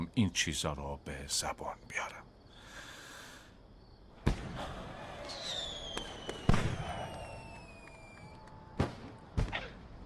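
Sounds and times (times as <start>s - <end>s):
speech: 0.2s - 2.3s
fireworks exploding: 4.2s - 9.8s
faint whistling of fireworks: 5.0s - 9.3s.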